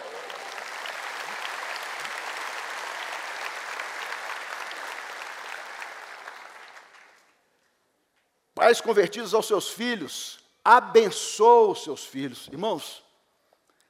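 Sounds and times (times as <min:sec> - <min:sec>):
audience clapping: 0:00.0 - 0:07.7
speech: 0:08.6 - 0:13.0.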